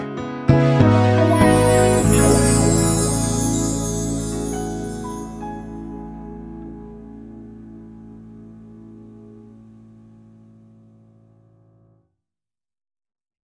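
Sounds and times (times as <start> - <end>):
instrumental music: 0.2 - 10.9.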